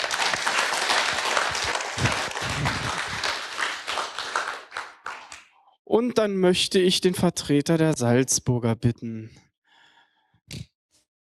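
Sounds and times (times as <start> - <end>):
crowd applauding: 0.0 - 5.5
speech: 5.9 - 9.4, 10.5 - 10.7.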